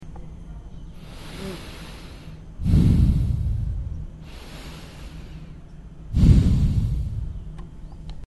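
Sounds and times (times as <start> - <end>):
breathing: 1.0 - 7.4.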